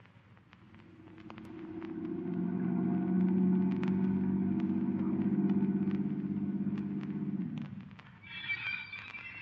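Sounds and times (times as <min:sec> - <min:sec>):
car engine humming while driving: 0:01.0 - 0:07.9.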